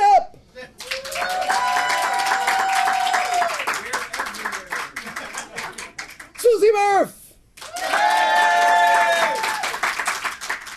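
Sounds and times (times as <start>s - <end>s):
crowd clapping: 0.7s - 6.6s, 7.5s - 10.7s
voices cheering and whooping: 0.8s - 3.6s, 7.6s - 9.8s.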